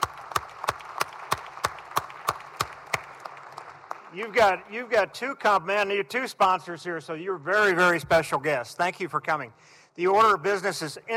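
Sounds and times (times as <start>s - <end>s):
round of applause: 0.0s - 4.7s
speech: 4.1s - 11.1s.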